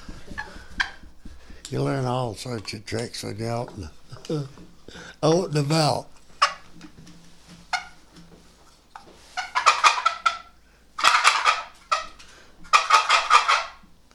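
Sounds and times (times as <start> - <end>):
turkey gobbling: 0.0 - 1.9, 6.3 - 6.8, 7.7 - 8.2, 9.4 - 13.8
speech: 1.7 - 6.2.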